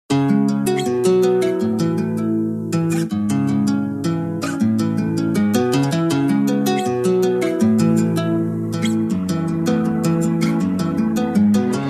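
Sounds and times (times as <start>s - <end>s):
guitar intro: 0.1s - 11.8s.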